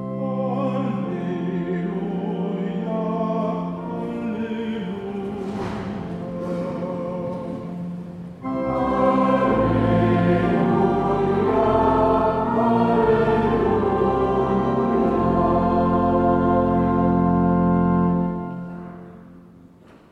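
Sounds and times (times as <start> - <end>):
choir singing: 0.2 - 18.8.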